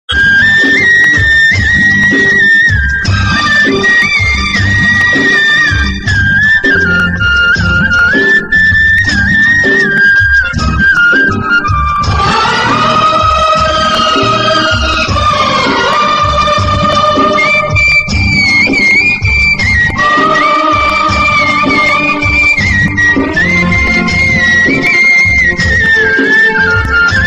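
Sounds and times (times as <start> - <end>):
flute: 0.1 - 27.2.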